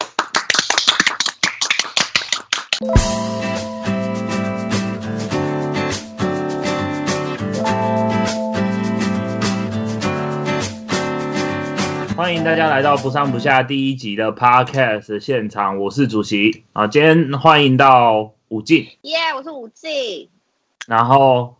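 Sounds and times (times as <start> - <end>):
hand clapping: 0.0 - 3.2
speech: 2.8 - 3.3, 12.2 - 21.5
cheerful musical intro with steady beat: 2.8 - 13.6.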